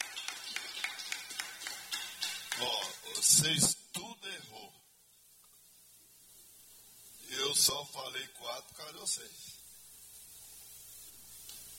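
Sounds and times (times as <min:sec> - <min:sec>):
hands clapping: 0:00.0 - 0:03.5
speech: 0:02.6 - 0:03.8, 0:07.7 - 0:09.6.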